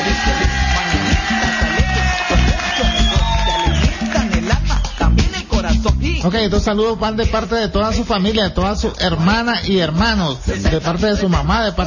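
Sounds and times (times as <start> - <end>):
crowd applause: 0.0 - 5.4
high whistle-like tones: 2.6 - 3.9, 4.6 - 5.2
speech: 6.3 - 11.8.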